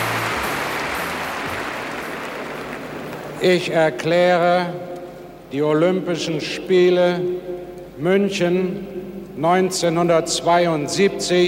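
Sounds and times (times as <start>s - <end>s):
stadium crowd cheering: 0.0s - 3.4s
speech: 3.4s - 4.9s, 5.5s - 11.4s.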